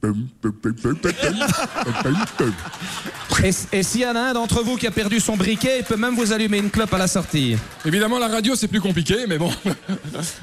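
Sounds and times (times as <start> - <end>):
speech: 0.0 - 10.4
voice imitating a cartoon dragon with warbling chuckles: 0.4 - 2.7.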